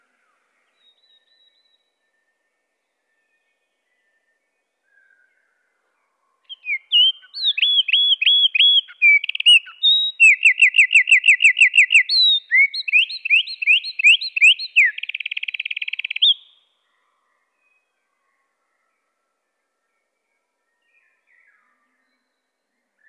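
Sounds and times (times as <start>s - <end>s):
Eurasian wren singing slowed: 6.5s - 16.6s.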